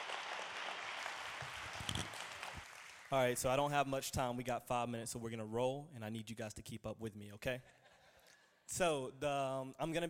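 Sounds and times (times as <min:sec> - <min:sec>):
audience applause welcoming a high school director: 0:00.0 - 0:03.2
speech: 0:03.1 - 0:07.8, 0:08.7 - 0:10.0.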